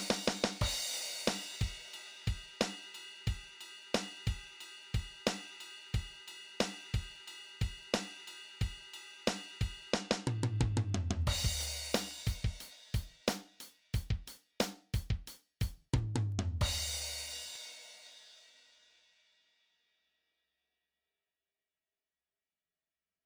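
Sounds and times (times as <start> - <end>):
drum kit playing: 0.0 - 17.6.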